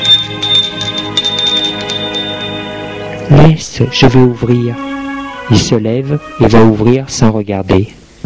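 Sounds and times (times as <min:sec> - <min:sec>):
doorbell ringing: 0:00.0 - 0:02.8
speech: 0:03.3 - 0:08.0.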